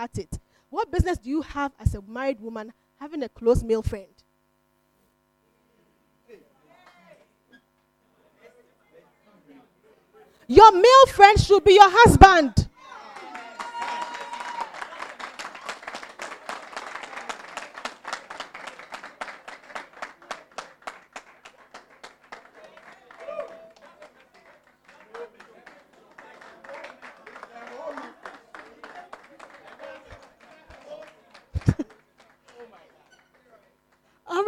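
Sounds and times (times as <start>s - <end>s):
speech: 0.0s - 4.2s, 10.5s - 12.6s
audience clapping: 13.0s - 34.0s.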